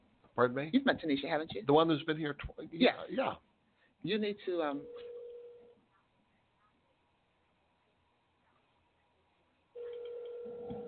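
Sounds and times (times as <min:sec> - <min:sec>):
speech: 0:00.4 - 0:05.1
telephone ringing: 0:04.7 - 0:05.8, 0:09.8 - 0:10.8.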